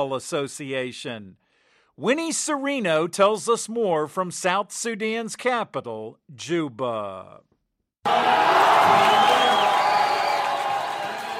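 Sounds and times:
speech: 0:00.0 - 0:01.4, 0:02.0 - 0:09.6
crowd cheering at a youth football match in Juba, South Sudan: 0:08.1 - 0:11.3.

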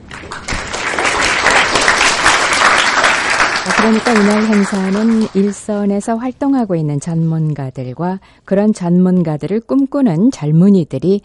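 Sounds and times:
audience applause: 0:00.0 - 0:05.6
speech: 0:03.8 - 0:11.2.

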